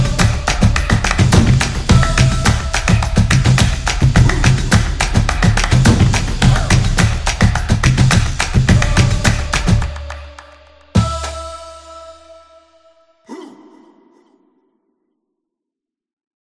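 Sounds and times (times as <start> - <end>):
drums: 0.0 - 10.1.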